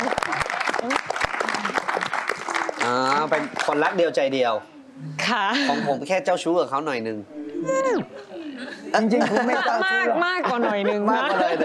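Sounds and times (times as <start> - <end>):
audience applause: 0.0 - 3.9
speech: 3.2 - 4.7, 5.3 - 8.2, 8.9 - 11.6.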